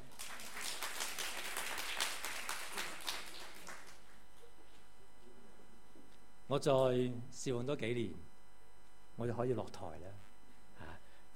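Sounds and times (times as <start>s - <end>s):
audience applause: 0.0s - 4.2s
electrical hum: 0.0s - 11.3s
speech: 6.5s - 8.3s, 9.2s - 10.3s.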